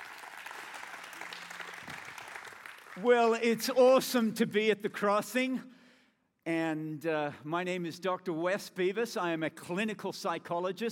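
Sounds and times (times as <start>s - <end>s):
audience applause at a church gathering welcoming a guest speaker: 0.0s - 3.4s
speech: 3.0s - 5.7s, 6.4s - 10.9s.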